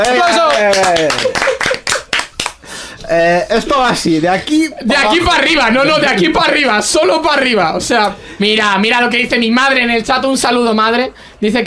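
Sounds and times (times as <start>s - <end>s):
speech: 0.0s - 1.4s, 3.1s - 11.6s
applause: 0.0s - 2.6s.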